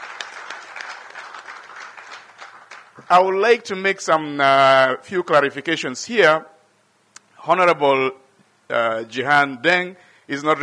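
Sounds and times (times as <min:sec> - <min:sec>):
crowd applauding: 0:00.0 - 0:03.1
speech: 0:03.1 - 0:06.5, 0:07.4 - 0:10.6.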